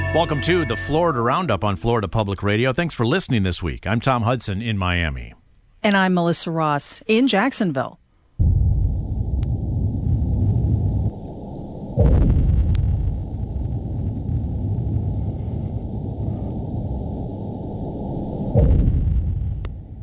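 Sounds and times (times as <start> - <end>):
speech: 0.2 - 8.6
deep underwater rumble: 8.4 - 20.0.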